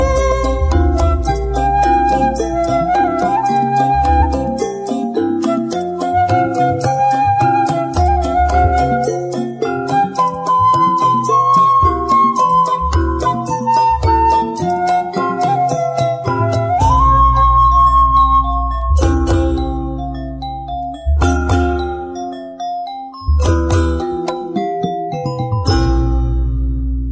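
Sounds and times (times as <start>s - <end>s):
classical music ringtone: 0.0s - 27.0s.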